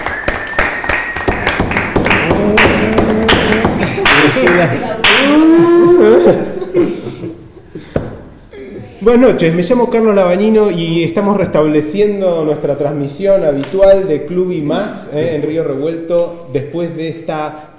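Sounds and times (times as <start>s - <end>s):
audience applause: 0.0s - 5.5s
laughter: 2.4s - 8.0s
speech: 4.4s - 4.9s, 9.0s - 17.7s.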